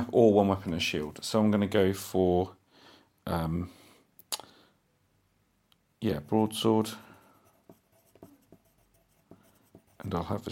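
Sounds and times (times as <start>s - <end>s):
speech: 0.1s - 2.6s, 3.2s - 3.8s, 6.0s - 7.1s, 10.0s - 10.5s
pen writing on a character sheet for a tabletop role-playing game: 6.8s - 10.5s.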